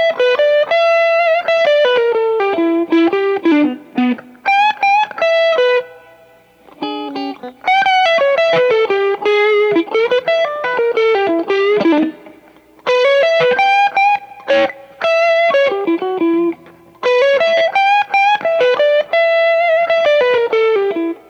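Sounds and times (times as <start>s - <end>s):
overdriven blues guitar: 0.0s - 21.2s.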